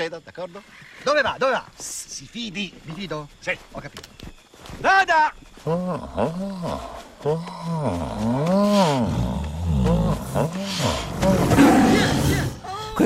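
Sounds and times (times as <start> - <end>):
speech: 0.0 - 12.4
tiger rough growling: 5.7 - 12.6
tiger roaring: 6.1 - 12.6.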